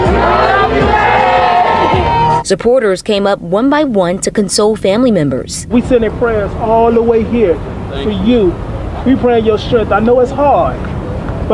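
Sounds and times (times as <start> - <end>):
crowd shouting in unison: 0.0 - 2.4
speech: 2.5 - 11.5.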